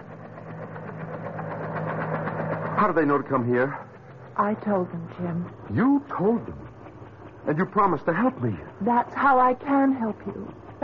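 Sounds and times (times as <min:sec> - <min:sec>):
helicopter engine droning: 0:00.0 - 0:10.8
speech: 0:02.8 - 0:06.6, 0:07.4 - 0:10.7.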